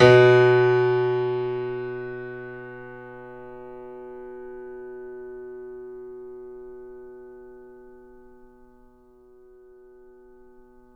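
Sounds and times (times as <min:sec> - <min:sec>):
grand piano playing fortissimo B1 off mic: 0:00.0 - 0:04.2.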